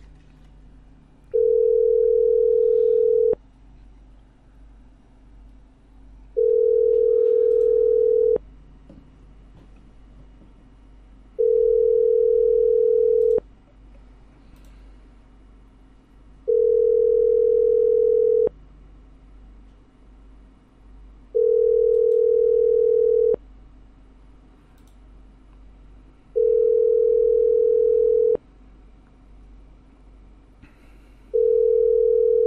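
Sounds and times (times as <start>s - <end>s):
telephone ringback tone while placing a call: 1.3s - 3.4s, 6.4s - 8.4s, 11.4s - 13.4s, 16.5s - 18.5s, 21.4s - 23.4s, 26.4s - 28.4s, 31.4s - 32.4s.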